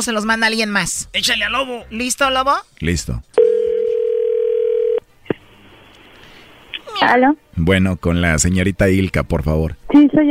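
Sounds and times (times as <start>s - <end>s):
speech: 0.0s - 3.4s, 7.0s - 10.2s
telephone dial tone while placing a call: 3.4s - 5.0s
high-pitched vocal sound: 6.8s - 7.3s.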